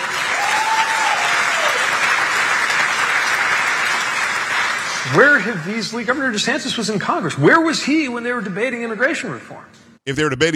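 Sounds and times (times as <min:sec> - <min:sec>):
audience applause: 0:00.0 - 0:05.7
speech: 0:05.1 - 0:10.5.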